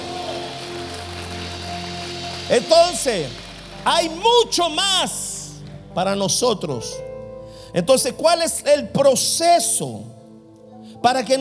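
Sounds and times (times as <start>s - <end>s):
audience applauding: 0.0s - 5.2s
speech: 2.5s - 5.2s, 6.0s - 7.0s, 7.7s - 10.1s, 11.0s - 11.3s.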